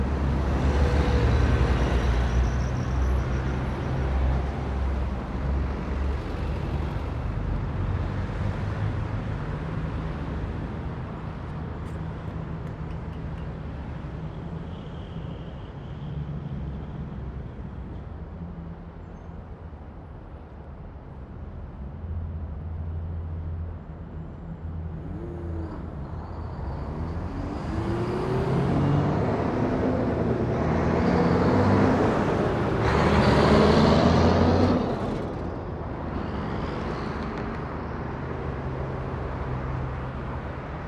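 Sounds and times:
trucks passing by in traffic: 0.0s - 14.2s, 23.0s - 40.8s.

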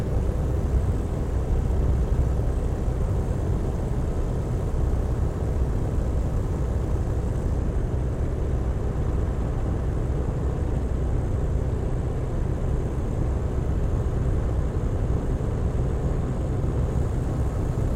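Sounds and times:
1916 Sopwith Pup replica airplane flying heard from interior: 0.0s - 17.9s.

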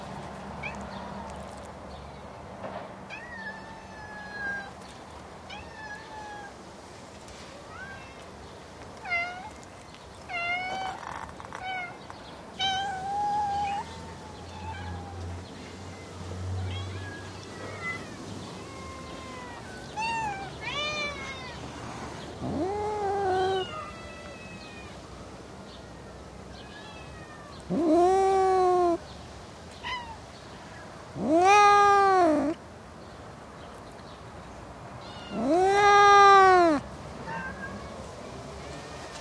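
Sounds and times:
cats meowing: 3.1s - 4.9s, 5.5s - 6.6s, 9.0s - 25.0s, 26.6s - 29.0s, 29.7s - 30.3s, 31.1s - 32.6s, 35.0s - 39.1s.

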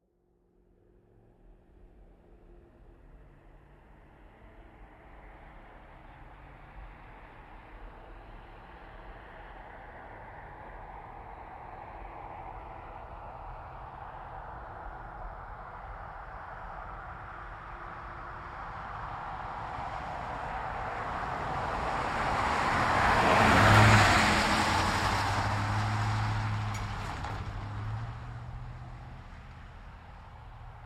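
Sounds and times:
GMC Savana van driving by a corner: 10.4s - 30.8s.

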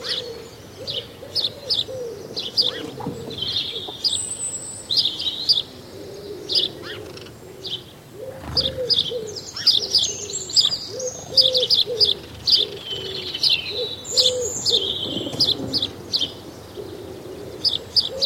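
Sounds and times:
several house sparrows chirping: 0.0s - 18.2s.

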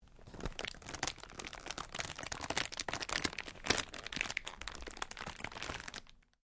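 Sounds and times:
cellophane crinkling: 0.0s - 6.4s.

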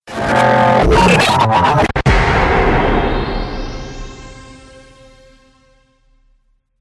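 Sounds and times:
glitch sound effect: 0.1s - 5.1s
trailer hit: 0.2s - 6.3s.

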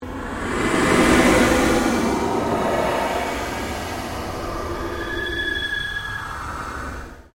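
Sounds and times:
long pulsing sweep: 0.0s - 7.3s.

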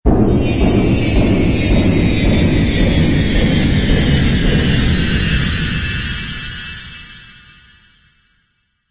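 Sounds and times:
magic explosion with delay effect: 0.1s - 7.7s.

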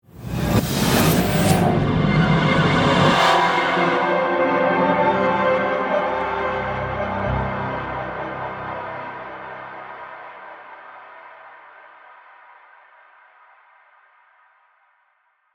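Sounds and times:
eerie ghostly horror music swell: 0.3s - 10.8s.

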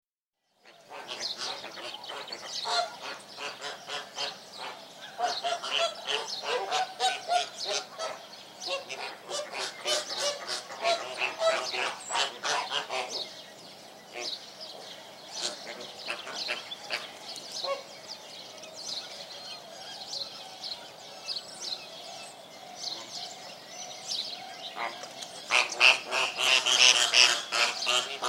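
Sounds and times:
flamingo flock honking with nasal goose-like calls: 0.7s - 13.4s, 14.1s - 17.9s, 24.7s - 28.2s.

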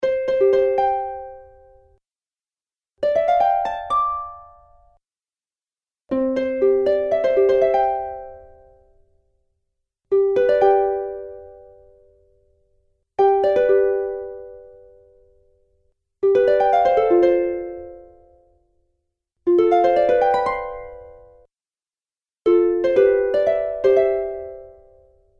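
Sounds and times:
fantasy harp: 0.0s - 1.9s, 3.0s - 5.0s, 6.1s - 9.0s, 10.1s - 12.5s, 13.2s - 15.5s, 16.2s - 18.6s, 19.5s - 21.5s, 22.5s - 25.3s.

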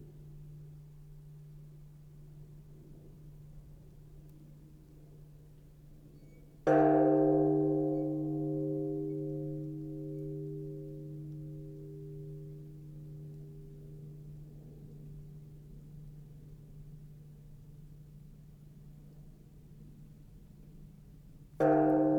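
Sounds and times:
Sannohe temple bell ringing: 6.7s - 14.4s, 21.6s - 22.1s.

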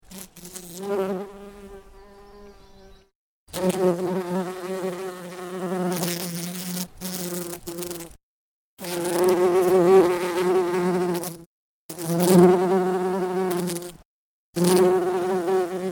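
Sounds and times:
bumblebee buzzing: 0.0s - 8.2s, 8.8s - 14.0s, 14.6s - 15.9s.

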